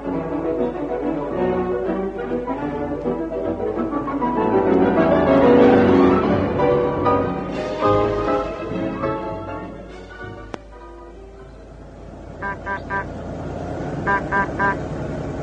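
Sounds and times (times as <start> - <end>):
car arriving and idling: 0.0 - 15.4
car horn toots: 12.4 - 13.1, 14.1 - 14.8.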